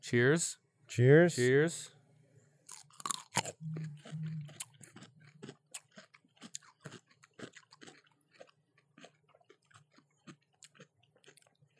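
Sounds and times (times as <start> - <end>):
speech: 0.0 - 2.0
chewing a crunchy pickle: 2.7 - 11.7.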